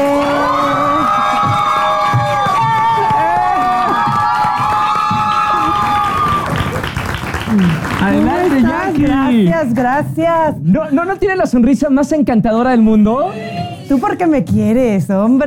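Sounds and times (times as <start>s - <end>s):
audience applause: 0.0s - 9.4s
speech: 9.8s - 15.4s.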